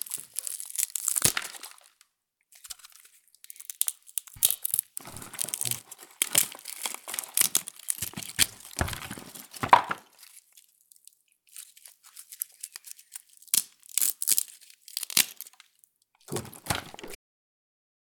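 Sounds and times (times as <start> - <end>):
sticks breaking: 0.1 - 2.0, 3.6 - 10.2, 16.3 - 17.2.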